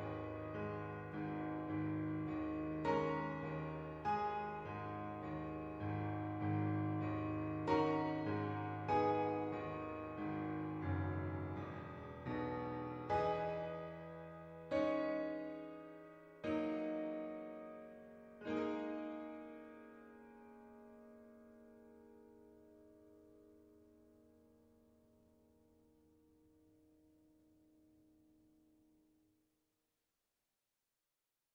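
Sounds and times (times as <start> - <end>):
piano cover: 0.0 - 23.0.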